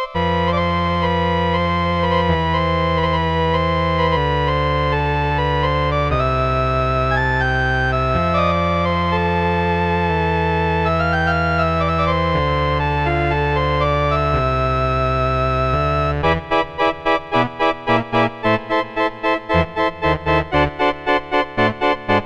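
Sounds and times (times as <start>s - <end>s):
Casio MT-68 organ preset sounds: 0.0s - 22.2s.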